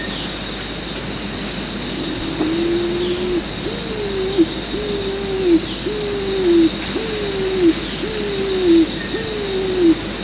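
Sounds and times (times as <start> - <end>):
pigeon giving hollow coos: 2.0 - 10.1.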